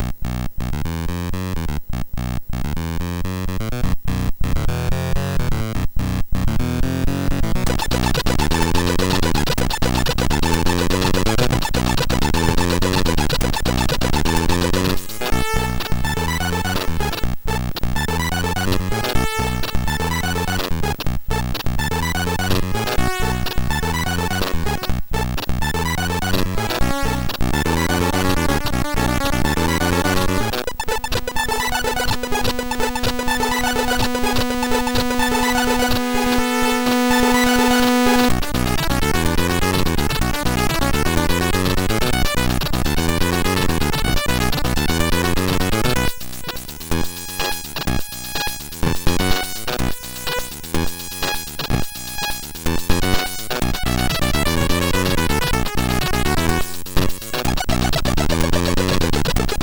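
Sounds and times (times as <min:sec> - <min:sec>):
Amiga chiptune remix on a MOS6581R4 SID chip: 0:00.0 - 0:59.6.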